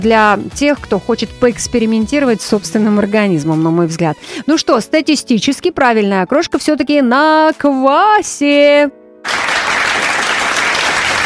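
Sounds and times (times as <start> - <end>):
speech: 0.0 - 9.5
loud ovation applause: 9.3 - 11.2.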